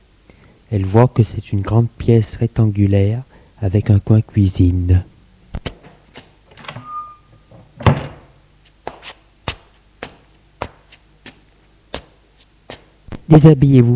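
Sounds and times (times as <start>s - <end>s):
speech: 0.7s - 5.1s, 13.3s - 13.9s
door opening: 5.8s - 8.4s.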